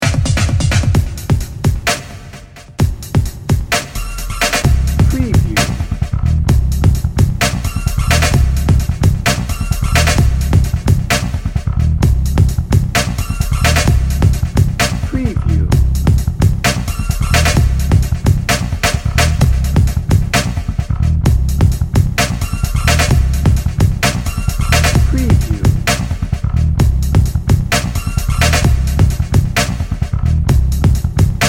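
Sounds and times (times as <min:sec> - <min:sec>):
drum and bass music: 0:00.0 - 0:31.4.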